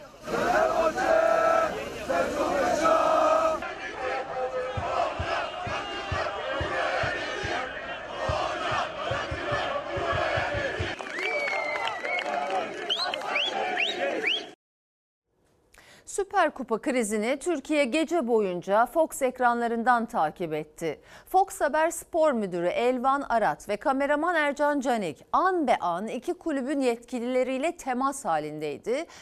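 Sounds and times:
football fans chanting and cheering: 0:00.0 - 0:14.6
rhythmic clapping or drumbeats: 0:04.0 - 0:13.4
shrill whistles: 0:11.0 - 0:14.6
speech: 0:16.4 - 0:29.2.

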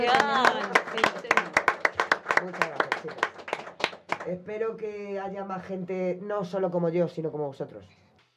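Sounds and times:
audience applause: 0:00.0 - 0:04.3
speech: 0:04.3 - 0:08.0.

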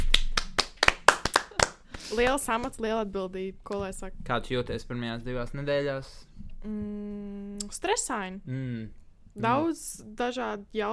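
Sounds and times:
hand clapping: 0:00.0 - 0:02.8
speech: 0:02.1 - 0:10.9.

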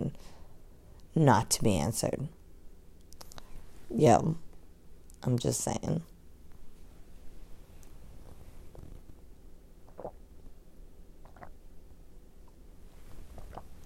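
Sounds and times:
speech: 0:01.2 - 0:02.4, 0:03.9 - 0:04.4, 0:05.2 - 0:06.1
sipping coffee: 0:09.8 - 0:10.2, 0:11.2 - 0:11.6, 0:13.1 - 0:13.8.

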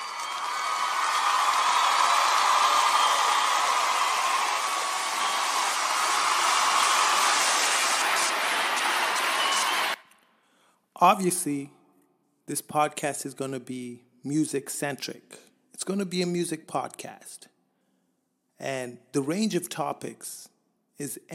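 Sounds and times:
applause: 0:00.0 - 0:10.0
speech: 0:11.0 - 0:11.8, 0:12.5 - 0:17.5, 0:18.6 - 0:21.3.

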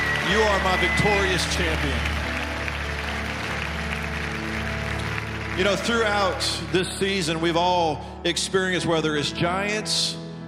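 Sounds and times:
audience clapping: 0:00.0 - 0:07.6
speech: 0:00.3 - 0:02.1, 0:05.6 - 0:10.2.

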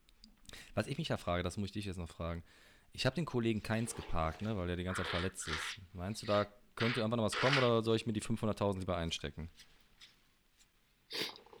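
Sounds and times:
speech: 0:00.8 - 0:10.1
faint soft sniffs: 0:03.6 - 0:07.8, 0:11.1 - 0:11.5
person blowing their nose: 0:03.7 - 0:07.8.

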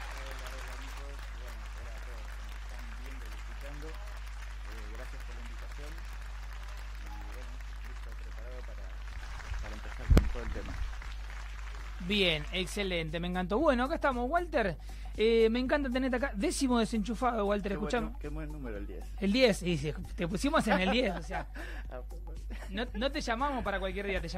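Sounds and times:
audience applause: 0:00.0 - 0:12.5
speech: 0:12.1 - 0:24.3
laughter: 0:20.4 - 0:23.0.

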